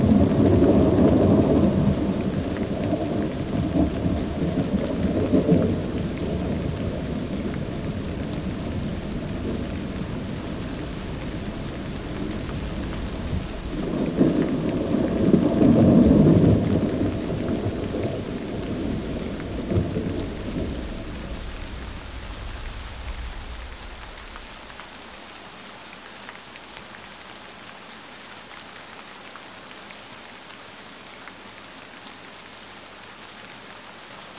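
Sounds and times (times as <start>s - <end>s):
thunder: 0.0s - 25.3s
rain: 0.0s - 34.3s.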